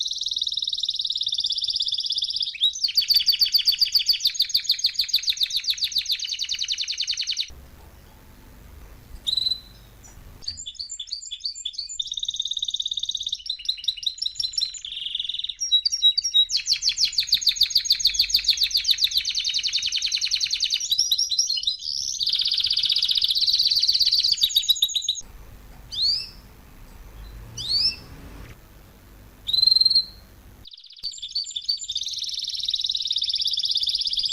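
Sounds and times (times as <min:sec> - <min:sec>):
canary singing trills, chirps and whistles: 0:00.0 - 0:08.3, 0:09.2 - 0:28.6, 0:29.4 - 0:34.3
faint hum: 0:07.5 - 0:10.6, 0:25.2 - 0:30.7.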